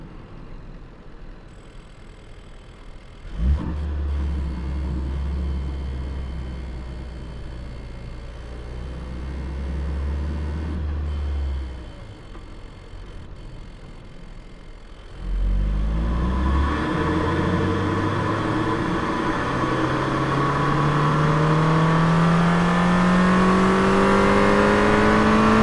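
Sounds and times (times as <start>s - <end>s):
Ford Focus RS engine heard onboard while driving: 0.0s - 25.6s.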